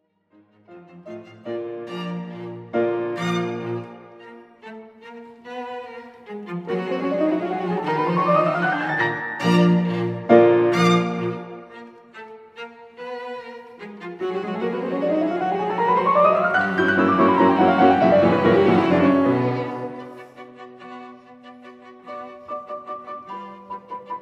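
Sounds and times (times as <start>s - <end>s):
piano trio playing: 0.7s - 4.4s, 6.6s - 12.0s, 14.2s - 20.4s.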